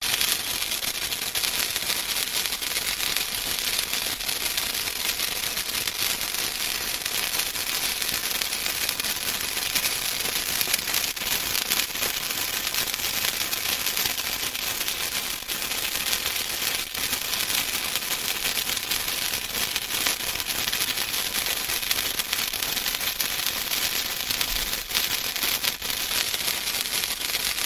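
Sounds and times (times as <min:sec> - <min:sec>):
sparkling fireworks: 0:00.0 - 0:27.6.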